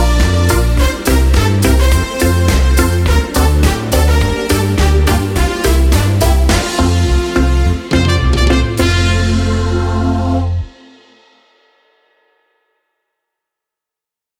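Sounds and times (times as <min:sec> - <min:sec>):
karaoke singing: 0:00.0 - 0:10.8.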